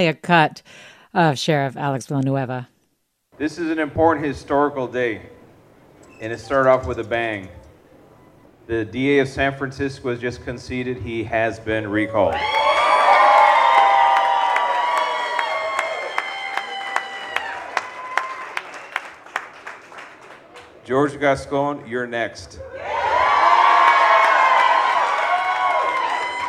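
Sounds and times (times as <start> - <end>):
speech: 0.0 - 2.7, 3.4 - 5.4, 6.2 - 7.6, 8.7 - 12.7, 20.9 - 22.9
crowd applause: 12.2 - 20.9, 22.7 - 26.4.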